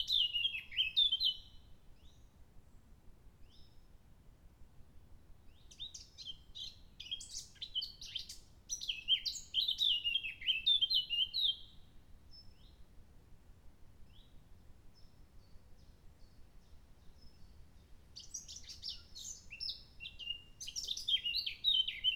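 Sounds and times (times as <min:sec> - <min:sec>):
blackcap singing: 0:00.0 - 0:02.1, 0:05.6 - 0:11.7, 0:18.2 - 0:22.1.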